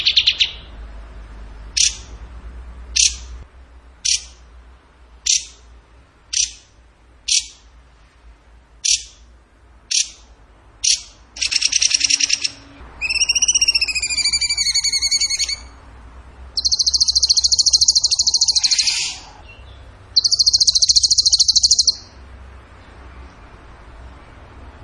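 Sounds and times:
bird trill: 0.0s - 0.8s, 1.7s - 2.1s, 3.0s - 3.3s, 4.0s - 4.4s, 5.2s - 5.6s, 6.3s - 6.7s, 7.3s - 7.7s, 8.8s - 9.3s, 9.9s - 15.8s, 16.6s - 22.2s.

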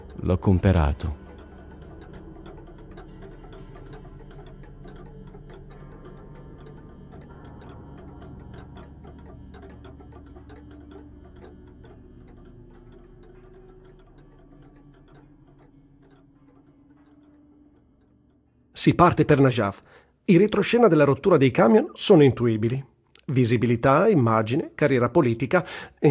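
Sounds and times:
clock ticking: 0.0s - 26.0s
speech: 0.2s - 1.2s, 18.8s - 26.0s.

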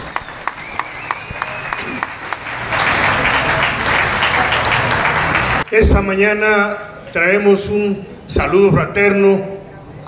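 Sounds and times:
audience applause: 0.0s - 5.7s
speech: 5.7s - 10.0s.

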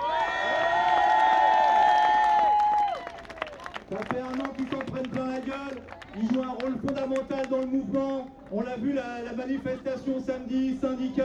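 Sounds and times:
crowd cheering: 0.0s - 7.2s
speech: 3.9s - 4.7s, 7.1s - 11.2s.

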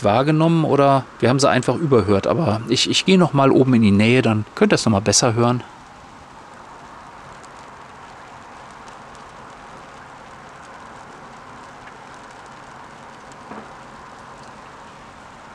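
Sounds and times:
speech: 0.0s - 5.8s
light drizzle pattering on a plastic cover: 5.6s - 15.5s.

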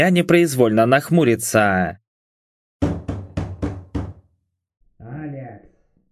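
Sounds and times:
speech: 0.0s - 2.0s
insistent knocking on a door: 2.8s - 4.3s.

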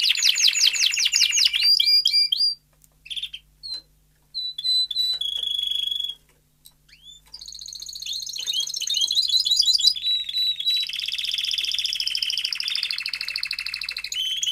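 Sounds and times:
domestic canary trilling and whistling: 0.0s - 6.2s, 6.9s - 14.4s.

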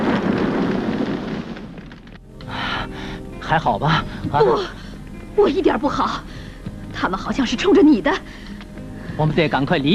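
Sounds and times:
car exploding in mid-air: 0.0s - 2.2s
speech: 3.5s - 4.8s, 5.4s - 6.3s, 7.0s - 8.4s, 9.2s - 9.9s.

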